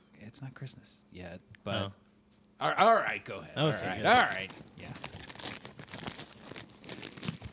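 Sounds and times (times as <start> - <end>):
speech: 0.3 - 2.0, 2.6 - 5.1
taped Christmas-present wrapping paper being torn open: 3.8 - 7.5.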